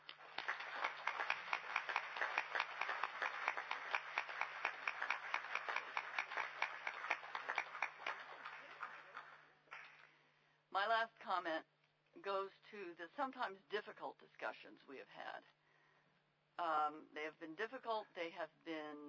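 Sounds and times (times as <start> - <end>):
audience applause: 0.0 - 9.9
speech: 10.9 - 15.6, 16.6 - 19.0.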